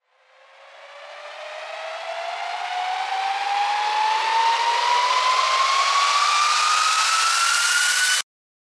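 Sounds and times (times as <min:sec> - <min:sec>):
riser sweep: 0:00.6 - 0:08.2.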